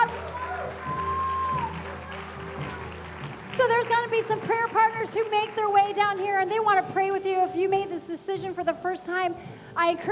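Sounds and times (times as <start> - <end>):
audience cheering and applauding: 0.0 - 6.6
speech: 3.6 - 10.0.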